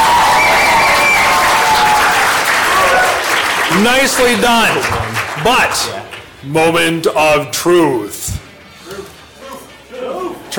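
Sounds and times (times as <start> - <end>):
audience applause: 0.0 - 6.3
speech: 3.8 - 9.0.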